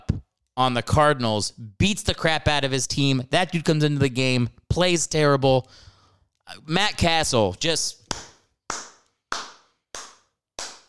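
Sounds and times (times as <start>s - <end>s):
speech: 0.6s - 5.9s, 6.5s - 8.2s
people clapping: 8.1s - 10.8s.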